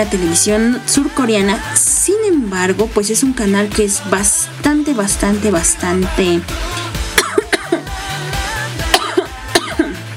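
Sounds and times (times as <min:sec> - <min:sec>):
speech: 0:00.0 - 0:06.8
woman coughing: 0:07.2 - 0:07.9, 0:08.9 - 0:10.0.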